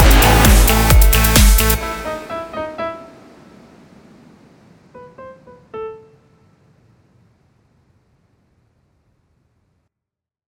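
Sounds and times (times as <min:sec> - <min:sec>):
dance concert music: 0:00.0 - 0:02.3.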